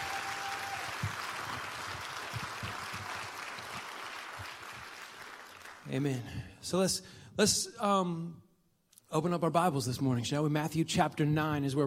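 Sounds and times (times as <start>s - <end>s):
audience applauding: 0.0s - 6.0s
speech: 5.9s - 8.4s, 9.1s - 11.8s.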